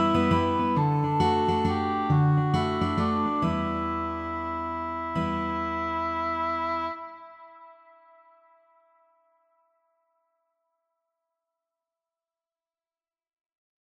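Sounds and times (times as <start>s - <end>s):
guitar folk melody: 0.0s - 8.0s.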